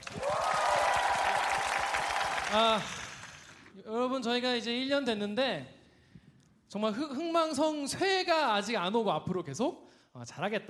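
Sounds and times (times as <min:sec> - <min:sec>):
audience applause: 0:00.0 - 0:03.7
speech: 0:02.5 - 0:03.0, 0:04.1 - 0:05.8, 0:06.7 - 0:10.6.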